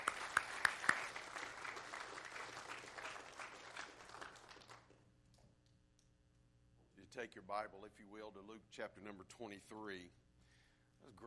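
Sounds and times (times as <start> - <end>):
audience applause: 0.0 - 5.0
speech: 7.2 - 10.2, 11.0 - 11.2.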